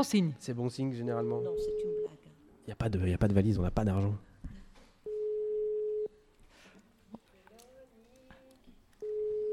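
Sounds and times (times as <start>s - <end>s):
speech: 0.0s - 2.0s, 2.7s - 4.3s
telephone ring tone on the line: 1.2s - 2.1s, 5.1s - 6.1s, 9.0s - 9.5s.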